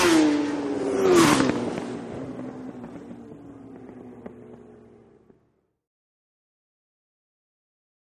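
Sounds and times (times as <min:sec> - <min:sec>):
motorcycles road racing: 0:00.0 - 0:05.8.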